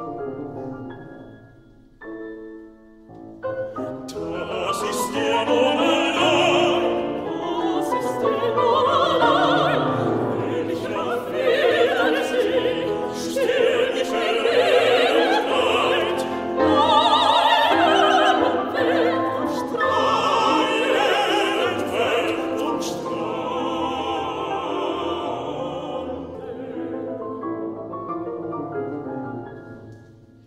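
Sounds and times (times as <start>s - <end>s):
chorus singing: 3.9s - 28.1s.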